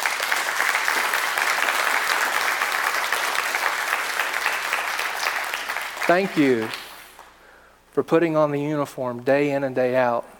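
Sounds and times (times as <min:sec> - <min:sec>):
audience applause: 0:00.0 - 0:07.2
speech: 0:06.1 - 0:06.8, 0:08.0 - 0:10.3.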